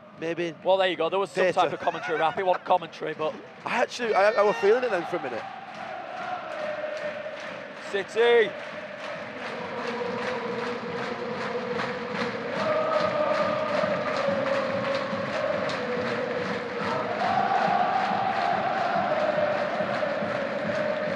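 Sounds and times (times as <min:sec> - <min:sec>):
speech: 0:00.2 - 0:05.6, 0:07.9 - 0:08.8
laughter: 0:01.4 - 0:05.1
football stadium crowd chanting: 0:03.4 - 0:21.1
rhythmic clapping: 0:04.9 - 0:21.1.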